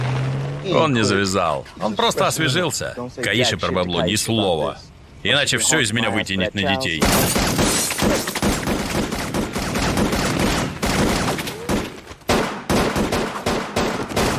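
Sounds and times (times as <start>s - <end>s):
speech: 0.6s - 8.3s
gunfire shootout: 7.0s - 14.3s.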